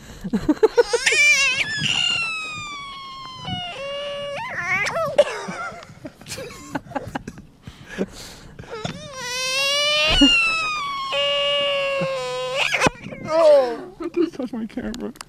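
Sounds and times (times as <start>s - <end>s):
speech: 0.2s - 0.7s
small child whining and crying: 0.8s - 5.3s, 8.7s - 13.9s.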